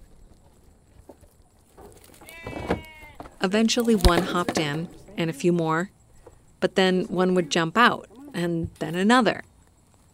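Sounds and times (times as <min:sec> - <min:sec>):
sheep bleating: 0:02.2 - 0:03.3
speech: 0:03.4 - 0:06.0, 0:06.6 - 0:09.5.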